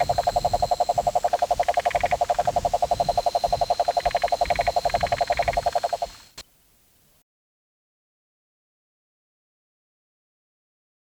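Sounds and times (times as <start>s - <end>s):
cane toad Rhinella marina trill: 0.0s - 6.2s.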